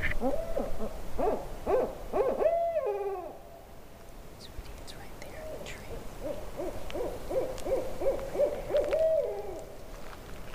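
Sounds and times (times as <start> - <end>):
owl hooting: 0.1 - 3.7, 5.4 - 9.9.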